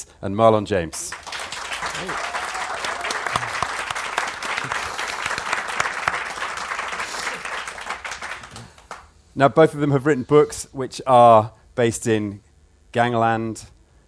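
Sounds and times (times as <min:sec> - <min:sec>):
speech: 0:00.0 - 0:01.2, 0:02.0 - 0:02.3, 0:09.4 - 0:13.8
audience applause welcoming two novelists at a literary event: 0:01.1 - 0:09.0.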